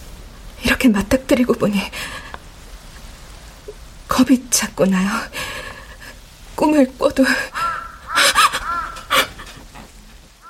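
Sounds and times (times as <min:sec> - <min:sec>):
speech: 0:00.8 - 0:02.2, 0:04.2 - 0:05.4, 0:06.6 - 0:07.6
crow cawing: 0:07.5 - 0:09.4.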